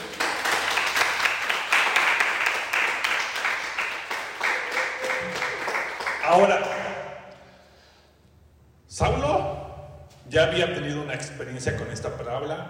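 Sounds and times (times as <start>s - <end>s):
audience applauding: 0.0s - 7.1s
speech: 6.3s - 6.7s, 10.4s - 12.6s.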